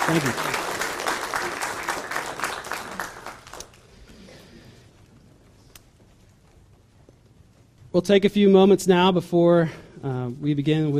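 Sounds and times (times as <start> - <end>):
audience clapping: 0.0 - 4.3
speech: 0.1 - 0.6, 7.9 - 10.9.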